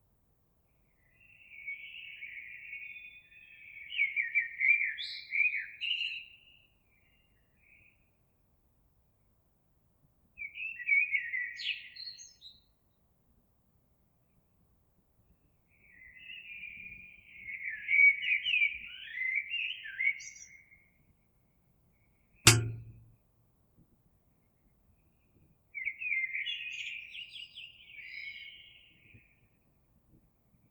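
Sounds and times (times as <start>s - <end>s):
Eurasian blackbird song: 0.7s - 8.0s, 10.4s - 12.8s, 15.7s - 21.0s, 25.0s - 29.6s
sharp knock: 22.5s - 23.1s.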